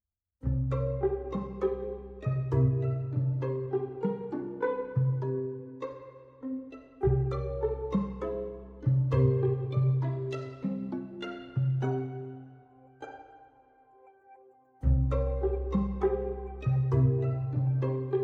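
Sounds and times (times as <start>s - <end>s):
pizzicato strings: 0.4s - 18.2s.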